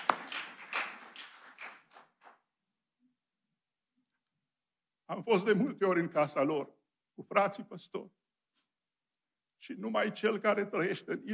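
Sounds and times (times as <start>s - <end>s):
audience applauding: 0.0s - 2.4s
speech: 5.1s - 8.2s, 9.6s - 11.3s.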